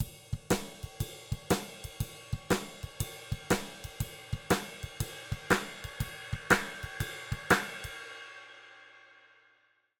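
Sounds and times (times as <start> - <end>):
drums: 0.0 - 9.3.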